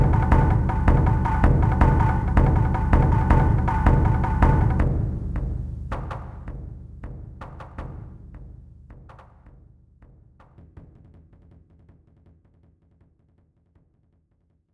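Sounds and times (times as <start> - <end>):
war drums: 0.0 - 9.4.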